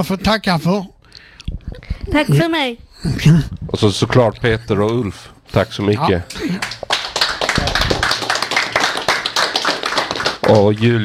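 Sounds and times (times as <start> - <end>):
speech: 0.0 - 6.9, 10.5 - 11.0
applause: 6.4 - 11.0.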